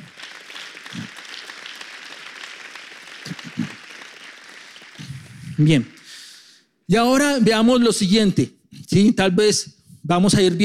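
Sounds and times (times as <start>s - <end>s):
audience applause: 0.0s - 5.7s
speech: 5.6s - 6.0s, 6.9s - 10.6s.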